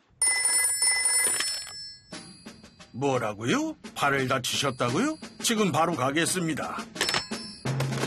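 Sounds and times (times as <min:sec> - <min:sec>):
telephone ringing: 0:00.2 - 0:02.9, 0:06.9 - 0:07.9
speech: 0:02.9 - 0:07.0.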